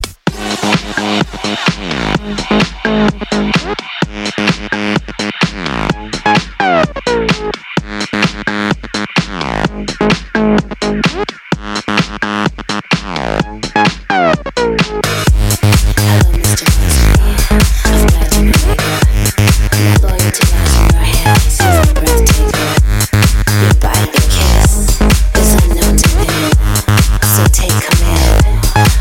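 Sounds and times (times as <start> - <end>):
electro music: 0.0 - 29.0.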